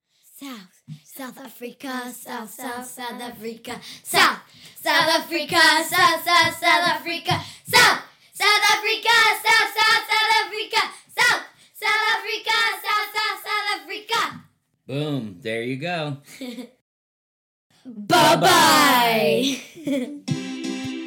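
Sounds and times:
speech: 0:00.4 - 0:08.0, 0:14.9 - 0:16.8, 0:17.8 - 0:20.4
kids performing a camp cheer: 0:04.2 - 0:14.4, 0:18.0 - 0:19.4.

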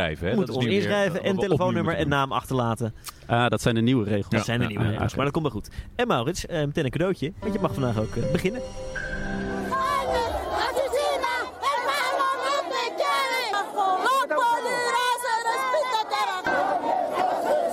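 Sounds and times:
speech: 0:00.0 - 0:09.1
angry people: 0:09.7 - 0:17.7.

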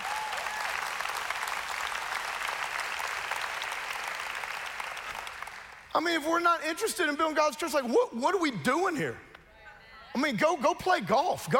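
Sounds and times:
audience clapping and applauding: 0:00.0 - 0:05.9
speech: 0:06.0 - 0:09.3, 0:10.2 - 0:11.5.

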